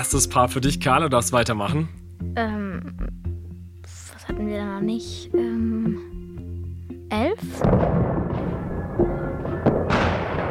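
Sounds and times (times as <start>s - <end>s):
speech: 0.0s - 3.3s, 4.3s - 6.1s, 7.1s - 9.2s
fireworks cracking and popping: 7.6s - 10.4s.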